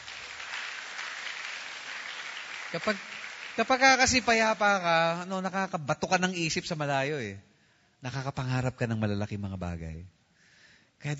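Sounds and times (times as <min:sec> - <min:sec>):
church congregation clapping: 0:00.0 - 0:05.4
speech: 0:02.7 - 0:10.2, 0:11.0 - 0:11.1.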